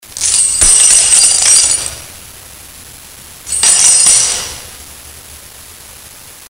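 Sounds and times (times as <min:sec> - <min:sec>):
jingle: 0:00.2 - 0:02.0, 0:03.5 - 0:04.7.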